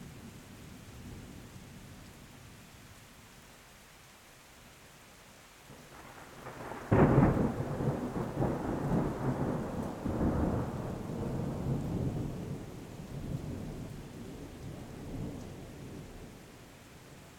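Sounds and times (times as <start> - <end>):
storm: 5.7 - 16.5.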